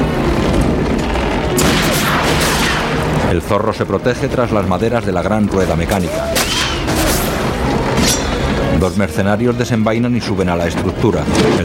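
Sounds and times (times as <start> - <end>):
loud rumbling noise: 0.0 - 11.6
musket gunshot: 1.6 - 3.0
speech: 3.3 - 7.2, 8.8 - 11.6.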